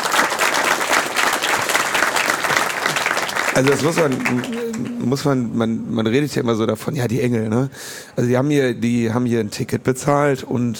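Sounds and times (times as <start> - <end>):
audience applause: 0.0 - 5.4
speech: 3.6 - 10.7.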